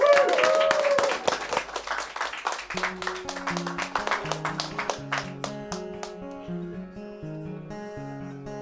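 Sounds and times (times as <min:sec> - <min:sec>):
audience applause: 0:00.0 - 0:06.5.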